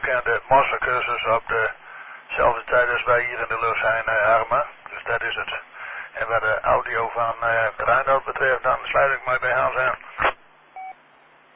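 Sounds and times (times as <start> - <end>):
speech: 0.1 - 10.3
morse code beep tones on radio: 10.8 - 11.0.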